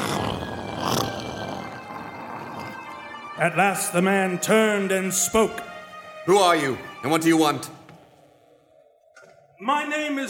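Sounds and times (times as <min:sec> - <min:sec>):
large dog growling ominously: 0:00.0 - 0:03.3
speech: 0:03.4 - 0:05.7, 0:06.3 - 0:07.8, 0:09.6 - 0:10.2.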